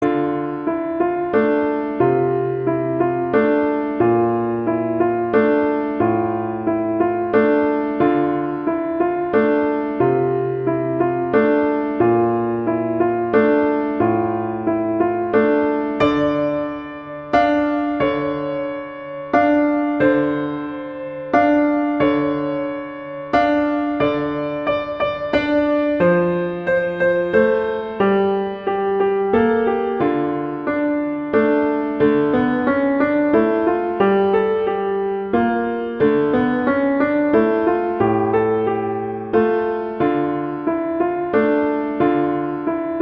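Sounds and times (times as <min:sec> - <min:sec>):
beginner-level Christmas carol music: 0:00.0 - 0:43.0.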